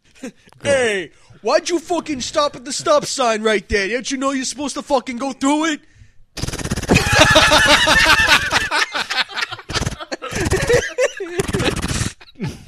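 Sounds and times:
speech: 0.2 - 6.5, 7.2 - 8.9
rapid bursts of gunfire: 6.4 - 7.3
laughter: 6.9 - 12.6.

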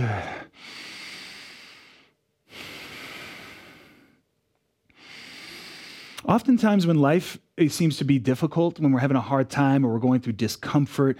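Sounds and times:
speech: 0.0 - 0.7, 6.3 - 11.1
slow deep breathing during a yoga flow: 0.0 - 4.3, 4.9 - 6.3.

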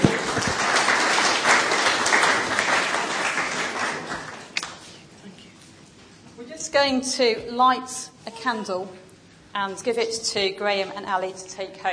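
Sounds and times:
gentle round of applause from a gathered crowd: 0.0 - 4.6
speech: 6.8 - 9.0, 9.6 - 11.9.

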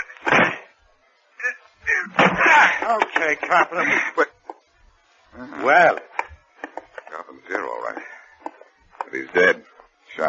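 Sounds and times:
locked door being broken down: 2.2 - 2.5
speech: 2.9 - 4.3, 5.4 - 6.1, 9.1 - 10.2.

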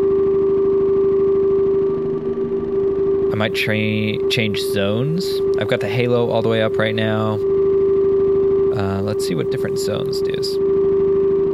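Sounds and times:
steady synthesizer sine tone with stuttering pulse: 0.0 - 11.5
glitchy delay repeats: 1.6 - 10.6
speech: 3.4 - 7.5, 8.7 - 10.7.

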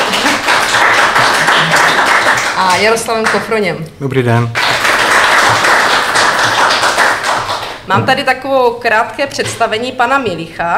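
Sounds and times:
audience applause: 0.0 - 3.4, 4.6 - 7.8
speech: 2.8 - 4.6, 7.9 - 10.7.

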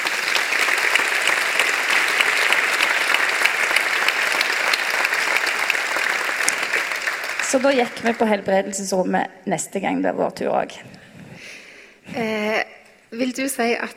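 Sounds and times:
audience applause: 0.0 - 8.6
speech: 7.5 - 11.0, 12.1 - 12.6, 13.2 - 13.9.

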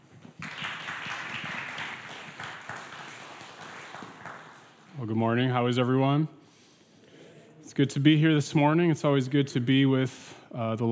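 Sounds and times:
congregation applause at a Sunday service: 0.0 - 4.9
speech: 5.0 - 6.4, 7.8 - 10.9.

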